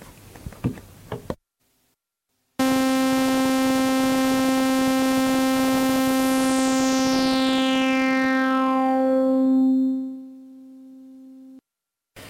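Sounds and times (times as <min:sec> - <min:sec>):
buzzy synthesizer note through resonant low-pass filter: 0:02.6 - 0:11.6.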